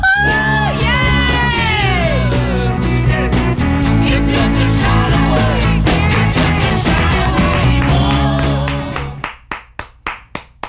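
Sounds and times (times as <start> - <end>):
loud music: 0.0 - 9.2
woman clapping her hands for herself: 7.5 - 10.6.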